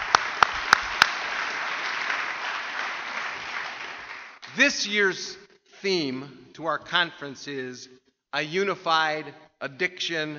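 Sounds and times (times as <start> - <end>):
audience applause: 0.0 - 4.6
sharp claps: 0.0 - 4.8
speech: 4.6 - 10.3.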